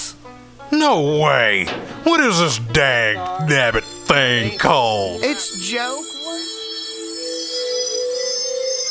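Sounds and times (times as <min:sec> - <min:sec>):
speech: 0:00.7 - 0:06.1
trippy theme music: 0:00.8 - 0:08.8.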